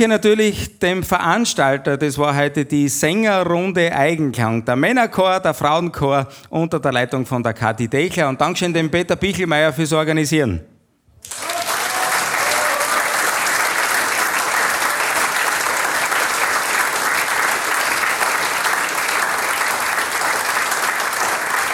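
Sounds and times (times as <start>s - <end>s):
speech: 0.0s - 11.5s
crowd applause: 11.2s - 21.7s.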